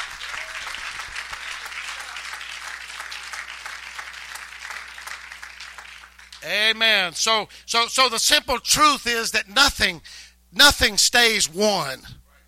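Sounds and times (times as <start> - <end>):
audience clapping hands: 0.0 - 6.6
speech: 6.4 - 12.2.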